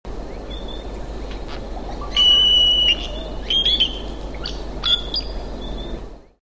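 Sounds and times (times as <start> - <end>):
giant cowbird thin high whistles: 2.1 - 5.2.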